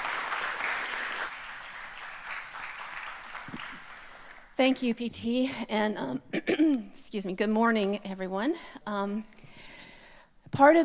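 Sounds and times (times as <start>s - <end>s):
audience applause welcoming a speaker at a church service: 0.0s - 4.6s
speech: 4.6s - 9.4s, 10.5s - 10.8s.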